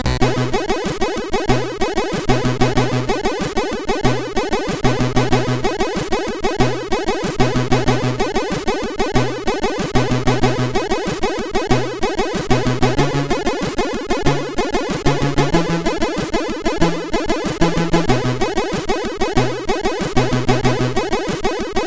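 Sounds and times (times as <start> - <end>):
MOS6581R4 sound chip music: 0.1 - 21.8.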